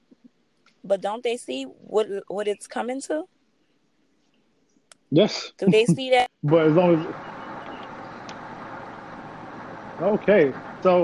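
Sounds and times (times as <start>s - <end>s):
speech: 0.9s - 3.4s, 5.1s - 7.2s, 10.0s - 11.0s
car road rumble heard through a phone call: 6.5s - 11.0s.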